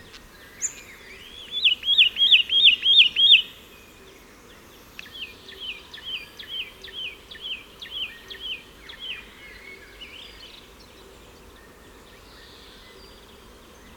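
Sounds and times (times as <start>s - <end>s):
Satin flycatcher Myiagra cyanoleuca calls: 0.6s - 3.6s.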